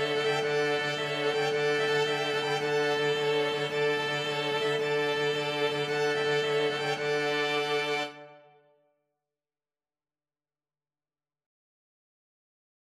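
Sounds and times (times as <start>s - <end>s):
string quartet playing a serenade: 0.0s - 8.5s.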